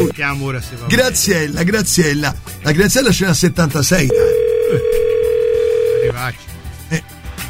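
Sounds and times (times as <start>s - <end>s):
speech: 0.0s - 5.1s, 6.0s - 7.1s
telephone ringing tone of an outgoing call: 4.1s - 6.2s.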